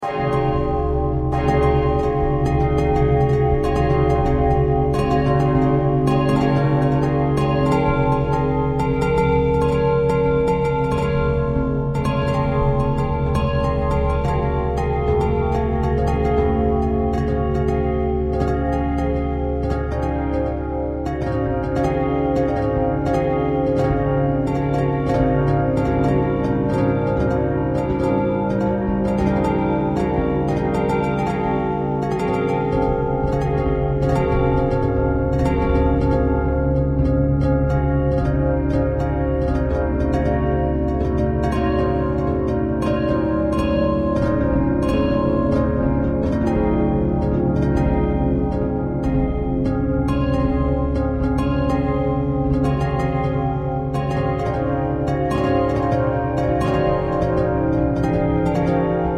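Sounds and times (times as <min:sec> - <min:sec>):
bells playing pentatonic notes: 0:00.0 - 0:59.1.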